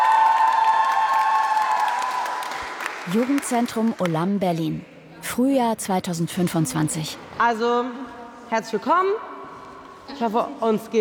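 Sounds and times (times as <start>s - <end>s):
loud audience applause: 0.0s - 3.8s
speech: 3.1s - 9.3s, 10.1s - 10.9s.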